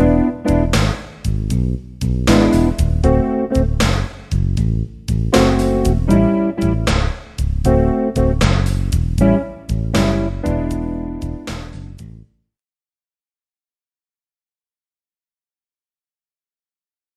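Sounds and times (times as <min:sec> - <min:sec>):
backing track for improvisation practice: 0:00.0 - 0:12.2.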